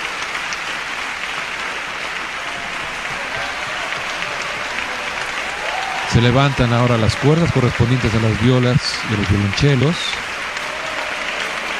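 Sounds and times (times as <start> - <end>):
large concert audience applauding a symphony orchestra in a standing ovation: 0.0 - 11.7
speech: 6.2 - 10.3.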